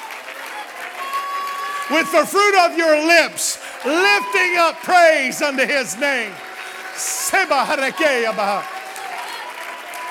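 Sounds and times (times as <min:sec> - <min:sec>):
audience applause: 0:00.0 - 0:10.0
speech: 0:01.9 - 0:08.7.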